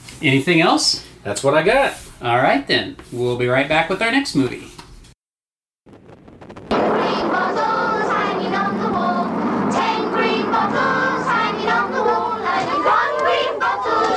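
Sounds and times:
speech: 0:00.2 - 0:04.8
group of children singing in unison: 0:06.7 - 0:14.1.

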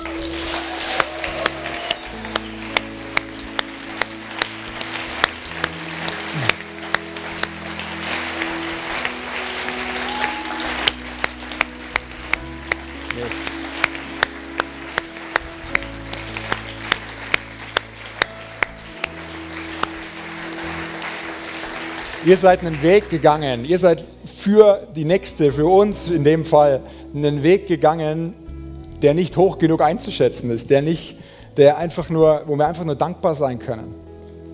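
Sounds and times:
audience applause: 0:00.0 - 0:23.5
speech: 0:22.3 - 0:28.4, 0:29.0 - 0:34.0.

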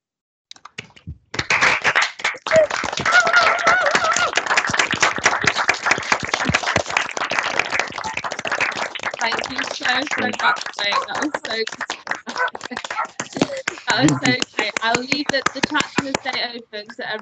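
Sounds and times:
group applause over video call: 0:00.5 - 0:17.1
laughter: 0:02.5 - 0:04.6, 0:09.2 - 0:17.1
speech: 0:09.9 - 0:11.9, 0:12.7 - 0:13.0, 0:13.9 - 0:17.1.

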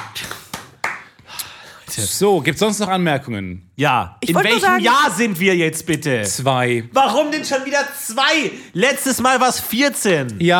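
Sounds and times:
crowd hand clapping applause: 0:00.0 - 0:01.3
speech: 0:02.0 - 0:10.5.

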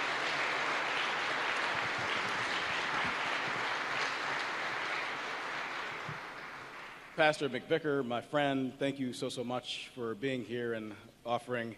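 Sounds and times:
audience applause: 0:00.0 - 0:07.2
speech: 0:07.2 - 0:11.7.

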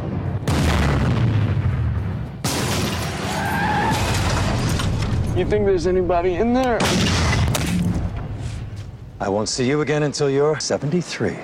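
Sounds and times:
gunfire in Drive Angry 3D action film trailer: 0:00.0 - 0:05.2, 0:06.5 - 0:08.4
speech: 0:05.4 - 0:07.2, 0:09.2 - 0:11.4.

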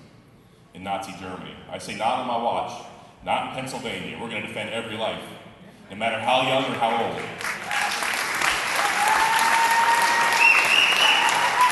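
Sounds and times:
speech: 0:00.8 - 0:07.5
crowd applauding: 0:06.7 - 0:11.6
thin whistle-like tones: 0:09.8 - 0:11.6.

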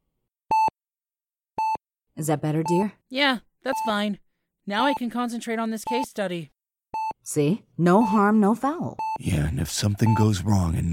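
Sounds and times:
heart monitor beeping: 0:00.5 - 0:00.8, 0:01.6 - 0:01.8, 0:02.6 - 0:03.0, 0:03.7 - 0:04.1, 0:05.8 - 0:06.2, 0:06.9 - 0:10.9
speech: 0:02.2 - 0:06.6, 0:07.2 - 0:10.9.

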